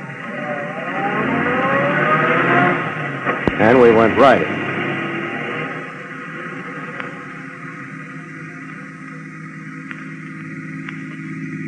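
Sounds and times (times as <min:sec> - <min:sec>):
car engine accelerating and driving off: 0:00.0 - 0:11.6
speech: 0:03.6 - 0:04.6.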